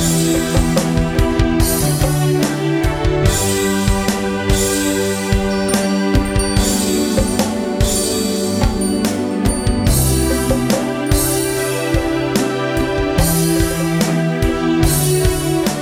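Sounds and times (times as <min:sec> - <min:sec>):
ambient strings: 0:00.0 - 0:15.8.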